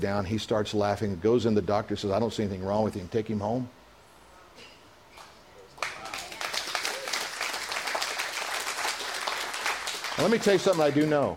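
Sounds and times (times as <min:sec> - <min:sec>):
speech: 0:00.0 - 0:03.8, 0:10.2 - 0:11.3
audience applauding: 0:05.8 - 0:11.3.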